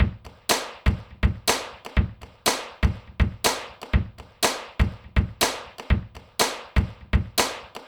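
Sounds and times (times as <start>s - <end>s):
drums: 0.0s - 7.8s.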